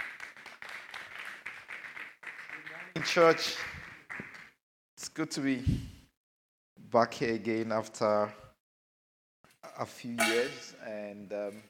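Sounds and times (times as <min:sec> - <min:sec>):
church congregation clapping to welcome a pastor: 0:00.0 - 0:04.6
speech: 0:03.0 - 0:03.7, 0:05.2 - 0:06.0, 0:06.9 - 0:08.4, 0:09.8 - 0:11.6.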